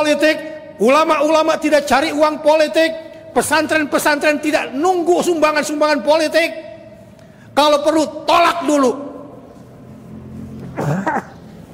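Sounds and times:
speech: 0.0 - 6.6, 7.6 - 9.1
cough: 10.7 - 11.4.

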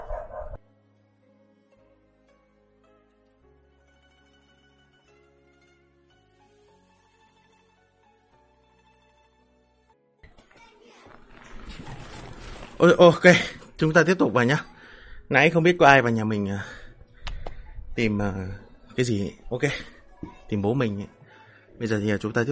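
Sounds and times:
dog barking loudly: 0.0 - 0.6
speech: 12.8 - 14.7, 15.3 - 16.8, 18.0 - 21.2, 21.8 - 22.5.

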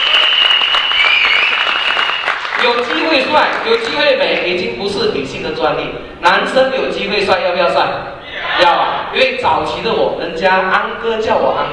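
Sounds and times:
audience applause at a product presentation event: 0.0 - 4.0
speech: 2.7 - 11.7.

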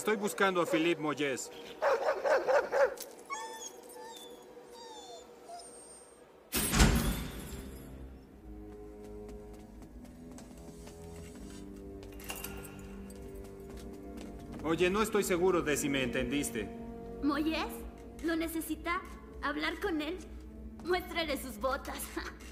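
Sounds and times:
speech: 0.0 - 2.6, 14.7 - 22.4
dog barking: 1.8 - 3.1
dog whimpering: 3.3 - 6.3.

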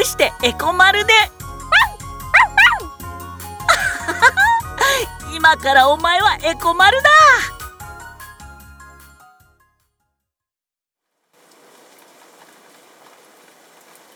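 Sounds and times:
speech: 0.1 - 1.3, 5.5 - 7.5
laughter: 3.7 - 5.1
rain falling: 11.4 - 14.1.

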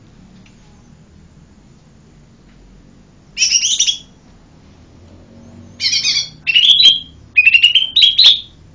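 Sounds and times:
bird singing lively high chirped phrases: 3.4 - 4.1, 5.8 - 8.6.

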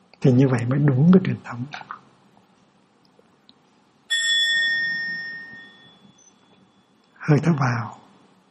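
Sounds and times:
soft hum: 0.0 - 8.5
speech: 0.2 - 2.0, 7.3 - 8.0
mindfulness bell being struck: 4.1 - 7.1.

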